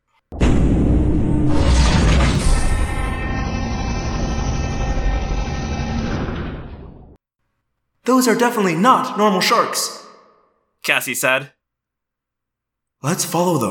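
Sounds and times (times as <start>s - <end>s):
droning motor whine: 0.4s - 7.2s
heavy mechanized door grinding open: 0.4s - 7.2s
speech: 8.1s - 10.0s, 10.9s - 11.6s, 13.0s - 13.6s.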